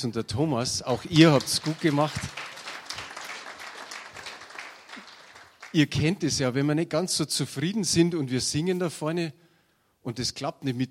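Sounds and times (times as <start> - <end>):
speech: 0.0 - 2.5, 5.7 - 9.4, 10.0 - 10.8
audience applause: 0.9 - 5.9.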